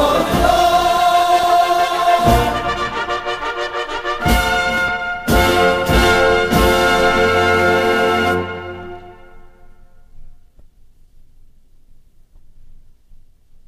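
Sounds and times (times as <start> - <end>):
regimental band playing a rugby song: 0.0 - 9.7.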